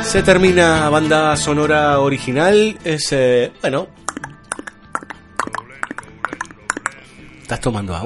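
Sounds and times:
speech: 0.1s - 4.0s, 7.5s - 8.0s
tongue clicks imitating horse hooves: 4.0s - 7.0s.

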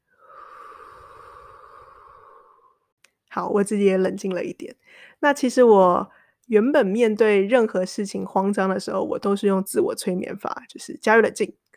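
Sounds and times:
deep breath in and out during a guided breathing exercise: 0.0s - 3.0s, 4.8s - 5.2s, 6.1s - 6.4s
speech: 3.4s - 11.7s.

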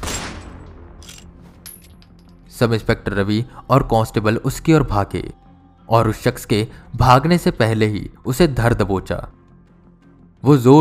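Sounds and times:
gunshot fired by a police inspector: 0.0s - 1.0s
speech: 2.6s - 9.4s, 10.4s - 10.7s.

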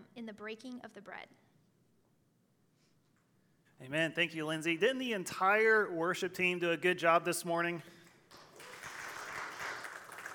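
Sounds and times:
speech: 0.2s - 1.5s, 3.8s - 8.0s
audience clapping: 8.0s - 10.3s.

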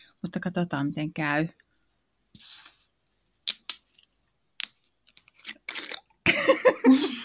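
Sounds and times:
speech: 0.3s - 1.6s, 2.4s - 2.7s, 6.6s - 7.2s
screw cap twisted open on sparkling bottle: 3.5s - 6.1s.

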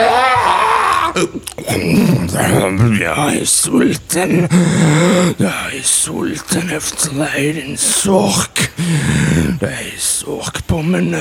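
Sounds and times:
person roaring in pain: 0.0s - 3.4s, 4.3s - 5.5s
speech: 1.2s - 11.1s.

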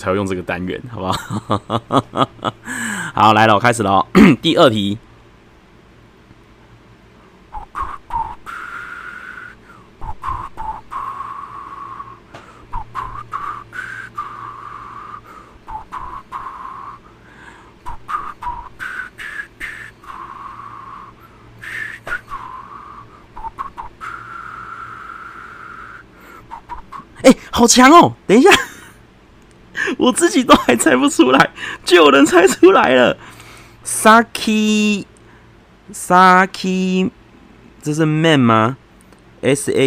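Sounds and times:
speech: 0.0s - 5.1s, 27.6s - 28.7s, 30.0s - 35.1s, 35.9s - 37.2s, 37.8s - 38.8s, 39.4s - 39.8s
laughter: 1.0s - 2.8s
person whistling: 7.5s - 17.0s, 17.9s - 27.2s.

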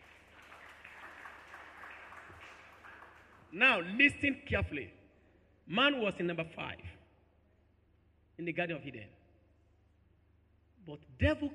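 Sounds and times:
audience clapping: 0.0s - 3.9s
speech: 3.5s - 5.0s, 5.7s - 7.0s, 8.4s - 9.2s, 10.8s - 11.5s.

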